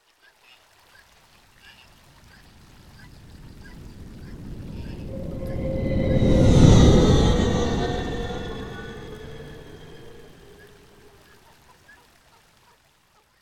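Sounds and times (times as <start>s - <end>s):
forest planet flyby whoosh: 2.6s - 11.2s.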